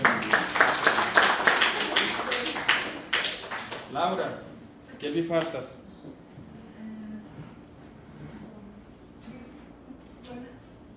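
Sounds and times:
sharp hand claps during a language class: 0.0s - 4.3s
speech: 4.0s - 5.9s.

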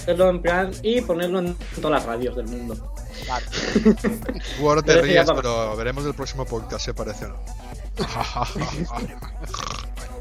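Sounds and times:
speech: 0.0s - 9.8s
laughter: 3.2s - 5.4s, 8.0s - 9.6s
pig grunting: 9.4s - 9.9s.

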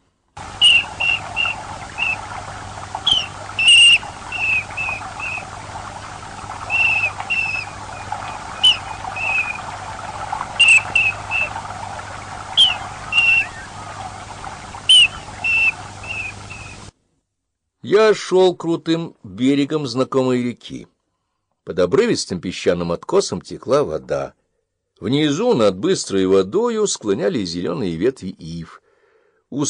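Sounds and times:
low hum: 0.4s - 16.9s
kingfisher calling: 0.5s - 16.9s
speech: 18.0s - 20.9s, 21.7s - 24.4s, 25.0s - 28.8s.

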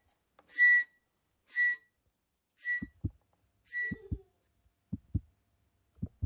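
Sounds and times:
breathy flute notes: 0.5s - 2.0s, 2.6s - 3.1s, 3.7s - 4.2s
soft low double thumps like a heartbeat: 2.8s - 3.2s, 3.9s - 4.3s, 4.9s - 5.4s, 6.0s - 6.2s.

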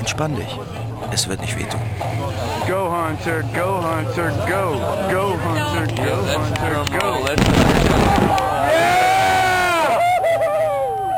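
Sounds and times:
speech: 0.1s - 9.3s
laughter: 0.2s - 11.1s
cannon firing ashes into the sky at a memorial service in Woody Creek: 7.3s - 9.0s
crowd cheering and whooping: 7.4s - 11.1s.

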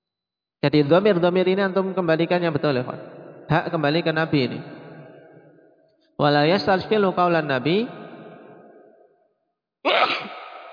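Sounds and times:
speech: 0.6s - 4.7s, 6.2s - 8.0s
person sneezing: 9.9s - 10.7s.

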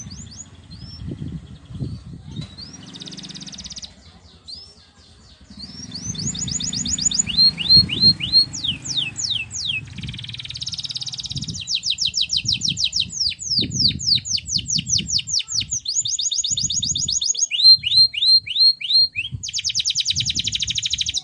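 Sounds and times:
Belgian canary singing: 0.0s - 21.2s.

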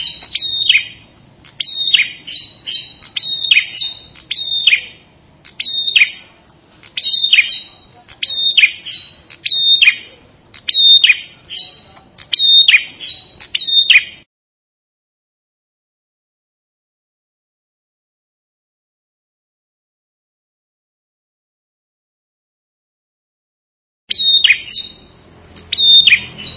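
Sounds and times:
Ashy tailorbird singing: 0.0s - 14.3s, 24.1s - 26.5s.

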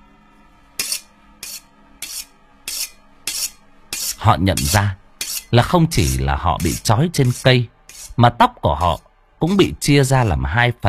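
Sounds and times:
knife being sharpened: 0.8s - 8.2s
speech: 4.2s - 10.8s.

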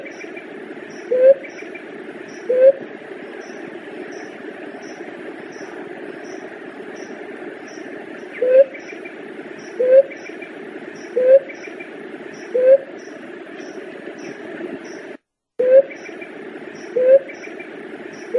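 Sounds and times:
Leptotila dove cooing: 0.9s - 1.6s, 2.3s - 2.9s, 8.3s - 8.9s, 9.6s - 10.4s, 11.0s - 11.6s, 12.4s - 12.9s, 15.6s - 16.1s, 16.8s - 17.4s, 18.2s - 18.3s.

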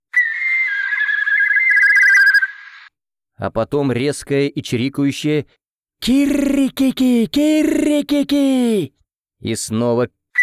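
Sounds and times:
shrill piercing battle whistle: 0.1s - 2.7s
speech: 3.4s - 10.2s.

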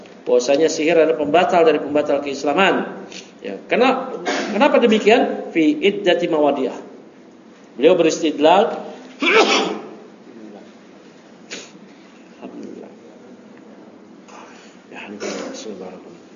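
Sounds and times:
speech: 0.3s - 6.9s, 7.8s - 9.8s
sneeze: 4.2s - 4.6s, 9.2s - 10.0s, 11.5s - 11.8s, 15.2s - 15.7s.

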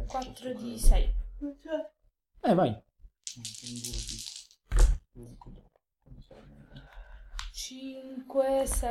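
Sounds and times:
speech: 0.1s - 6.9s, 7.6s - 8.8s
dice rattling and clattering across a surface: 3.2s - 4.6s.

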